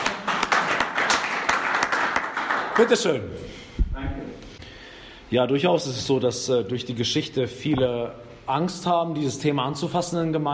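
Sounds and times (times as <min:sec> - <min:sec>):
audience applauding a participant at a gathering: 0:00.0 - 0:03.0
speech: 0:02.8 - 0:04.5, 0:05.3 - 0:10.5.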